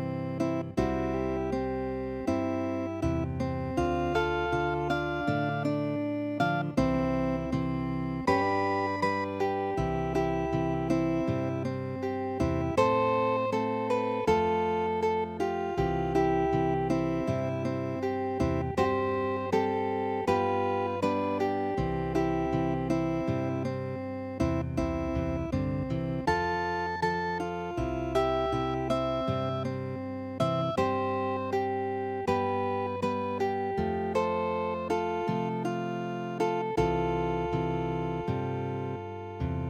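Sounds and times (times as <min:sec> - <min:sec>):
classical guitar piece: 0:00.0 - 0:39.6.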